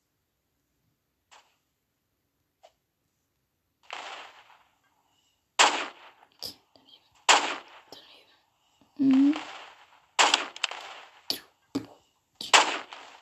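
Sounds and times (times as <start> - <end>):
sniper rifle gunshots in the video game Roblox: 3.8 - 4.7, 5.6 - 6.3, 7.2 - 8.0, 9.4 - 11.3, 12.4 - 13.2
quiet speech: 8.0 - 9.4.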